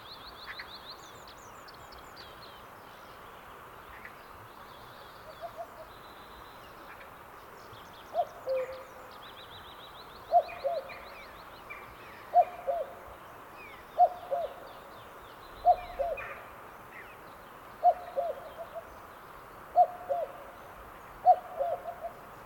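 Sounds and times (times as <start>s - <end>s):
other songbirds chirping and trilling: 0.0s - 22.4s
cuckoo calling: 8.1s - 8.9s, 10.3s - 11.0s, 12.3s - 13.0s, 14.0s - 14.7s, 15.6s - 16.4s, 17.8s - 18.9s, 19.8s - 20.5s, 21.2s - 22.2s.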